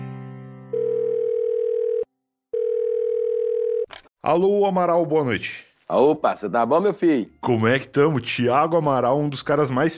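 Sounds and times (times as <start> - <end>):
telephone call connecting with chiming tones and clicks: 0.7 - 3.9
speech: 4.3 - 9.9.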